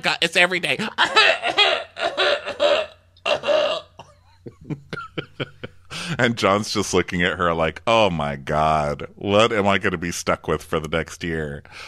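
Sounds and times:
speech: 0.0s - 2.2s, 6.2s - 11.8s
cough: 1.0s - 4.4s
laughter: 4.4s - 6.1s.

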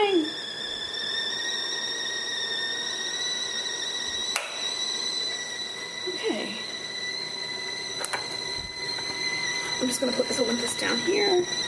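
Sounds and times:
kettle boiling and whistling: 0.0s - 11.6s
speech: 9.9s - 11.6s.

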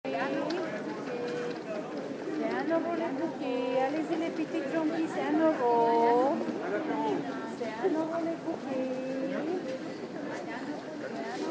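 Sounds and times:
Sunday morning market ambience in Paris: 0.1s - 11.4s.

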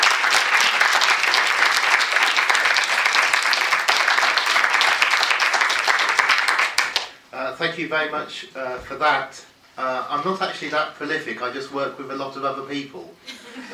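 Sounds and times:
audience applause greeting a lecturer before a talk: 0.0s - 7.1s
speech: 7.7s - 13.7s.

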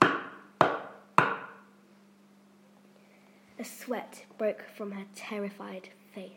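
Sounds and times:
sharp knocks: 0.0s - 1.6s
speech: 3.6s - 6.3s.

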